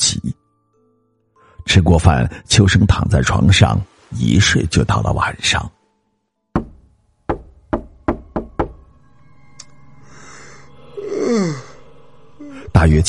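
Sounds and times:
speech: 1.7 - 5.8, 12.8 - 13.0
knocking on a door: 6.6 - 8.8
low groaning moan: 10.9 - 12.8.

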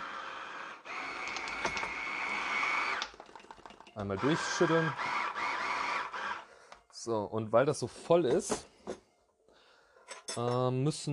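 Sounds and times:
immersion blender whirring: 0.0 - 6.5
speech: 4.0 - 5.2, 7.0 - 8.7, 10.4 - 11.1.

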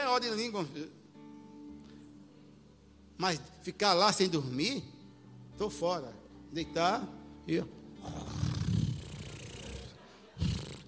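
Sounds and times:
speech: 0.2 - 1.0, 3.2 - 5.0, 5.6 - 8.4
snoring: 8.0 - 10.8.

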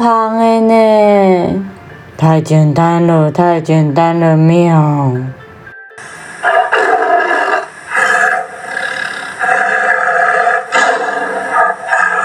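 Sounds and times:
speech: 0.0 - 1.6, 2.2 - 5.4
tiger roaring: 6.4 - 12.2.

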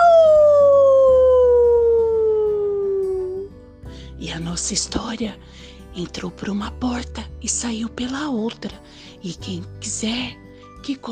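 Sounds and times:
werewolf howl: 0.0 - 3.5
speech: 4.6 - 11.0.

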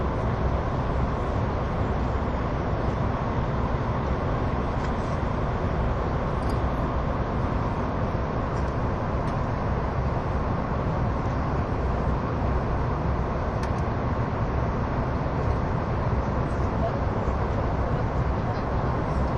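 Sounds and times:
SBB ETR610 tilting EuroCity train rumble on the Gotthard Base Tunnel route: 0.0 - 19.3.

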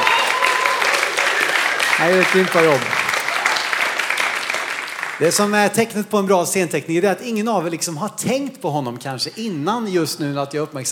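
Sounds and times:
audience applause: 0.0 - 6.0
speech: 2.0 - 3.0, 5.2 - 10.8.

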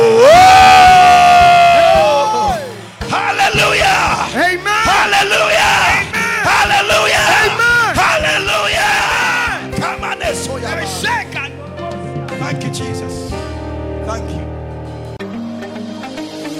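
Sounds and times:
audience shouting and clapping in celebration: 0.0 - 10.2.

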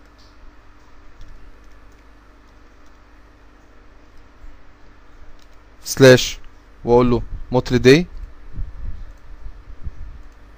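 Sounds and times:
low hiss: 0.0 - 10.5
computer keyboard clicks typing an IP address into a web browser: 1.1 - 3.0, 5.3 - 5.6, 9.0 - 9.3
speech: 5.9 - 8.1.

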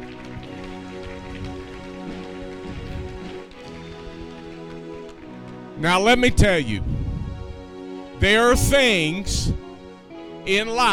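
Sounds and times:
audience clapping: 0.0 - 6.1
speech: 5.8 - 6.9, 8.2 - 9.6, 10.4 - 10.9.

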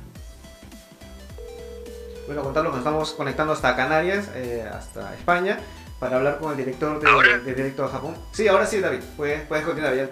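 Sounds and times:
phone ringtone while redialing a dropped call: 1.4 - 3.8, 7.0 - 7.4
speech: 2.3 - 10.1.

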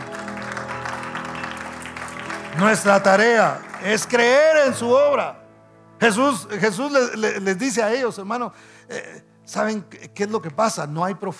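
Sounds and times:
audience applause: 0.0 - 4.9
speech: 2.6 - 5.4, 6.0 - 11.3.

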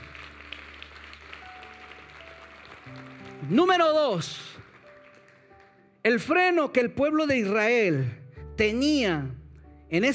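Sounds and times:
audience applause: 0.0 - 5.8
speech: 3.5 - 4.5, 6.0 - 10.1.

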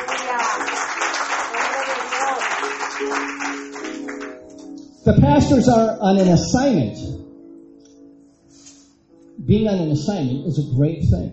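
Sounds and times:
audience applause: 0.0 - 4.3
speech: 5.0 - 7.2, 9.5 - 11.3.

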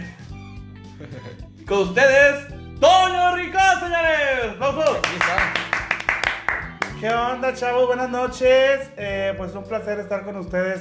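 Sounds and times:
laughter: 1.0 - 1.4
speech: 1.0 - 5.6, 7.0 - 10.7
person clapping: 4.8 - 7.3.

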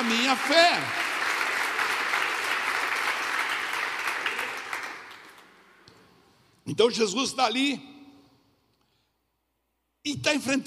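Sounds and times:
audience applause: 0.0 - 5.6
speech: 0.3 - 1.0, 6.7 - 7.9, 10.0 - 10.6.

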